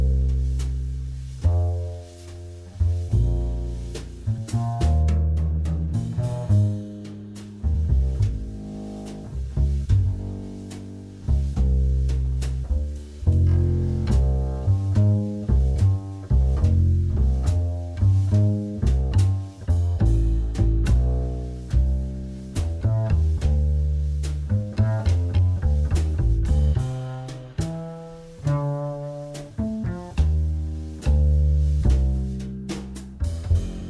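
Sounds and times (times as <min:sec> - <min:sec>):
jazz backing track in A-flat: 0:00.0 - 0:33.8.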